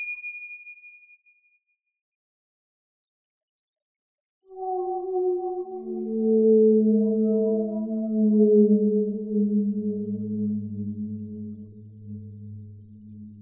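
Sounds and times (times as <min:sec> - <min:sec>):
whales calling: 0:04.5 - 0:13.4.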